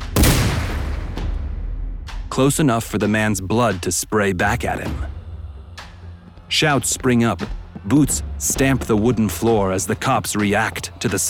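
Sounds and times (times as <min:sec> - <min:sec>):
loud gunshot: 0:00.0 - 0:02.1
speech: 0:02.4 - 0:05.2, 0:06.5 - 0:11.2.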